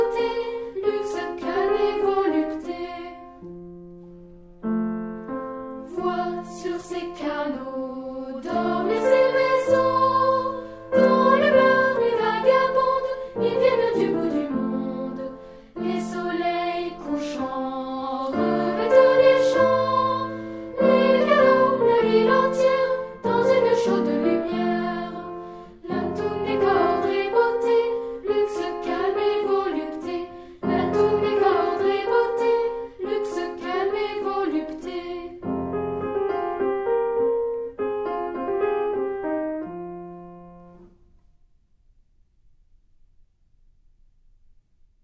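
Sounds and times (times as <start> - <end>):
piano: 0.0 - 45.0
chanting: 5.9 - 35.4.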